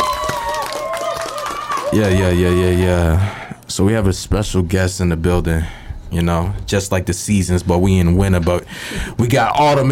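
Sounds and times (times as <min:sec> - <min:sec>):
people clapping hands: 0:00.0 - 0:02.6
speech: 0:01.9 - 0:09.8.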